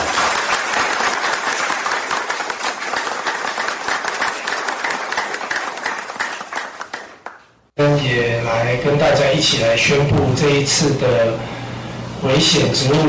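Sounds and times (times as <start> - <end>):
warm applause: 0.0 - 7.5
speech: 8.0 - 11.6, 12.2 - 13.0.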